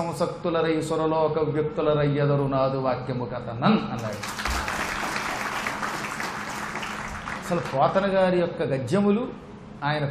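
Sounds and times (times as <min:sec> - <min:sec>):
speech: 0:00.0 - 0:04.5, 0:07.5 - 0:10.0
audience applause after a recitation of Telugu verse: 0:04.2 - 0:08.0.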